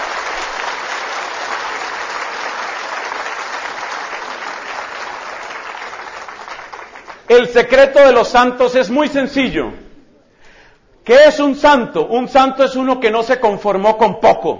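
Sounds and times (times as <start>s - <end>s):
audience applause: 0.0s - 7.3s
speech: 7.3s - 9.8s, 11.1s - 14.5s.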